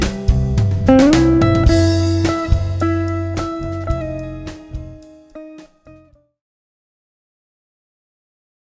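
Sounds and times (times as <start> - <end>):
dinner jazz music: 0.0 - 5.7.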